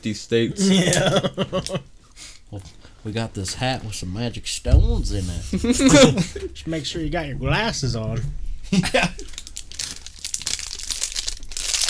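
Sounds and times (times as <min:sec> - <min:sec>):
speech: 0:00.0 - 0:01.9, 0:02.5 - 0:09.4
laughter: 0:00.6 - 0:01.8, 0:05.5 - 0:06.7, 0:08.7 - 0:09.3
cookies-and-cream Quest protein bar wrapper crinkling and tearing: 0:09.2 - 0:11.8.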